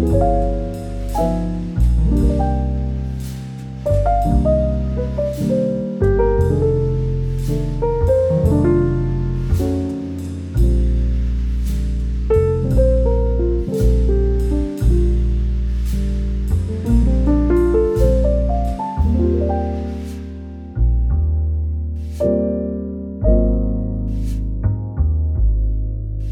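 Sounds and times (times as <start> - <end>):
soothing serene smooth jazz with romantic cafe vibes: 0.0 - 26.3.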